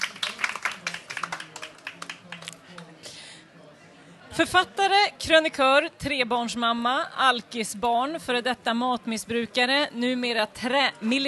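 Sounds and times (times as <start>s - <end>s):
small audience clapping: 0.0s - 3.0s
faint murmuring voices: 0.0s - 4.9s
speech: 4.4s - 11.2s.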